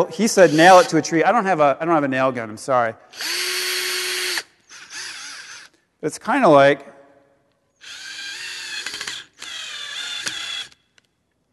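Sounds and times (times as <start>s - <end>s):
speech: 0.0s - 3.7s, 6.0s - 7.0s
power drill driving a screw through an apple into a tree: 0.4s - 1.1s, 3.1s - 5.8s, 7.8s - 11.1s
small clicks: 10.2s - 11.4s.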